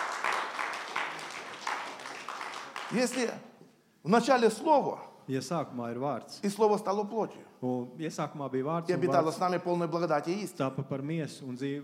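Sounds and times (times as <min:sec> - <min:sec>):
audience applause in a church: 0:00.0 - 0:03.4
speech: 0:02.9 - 0:11.8.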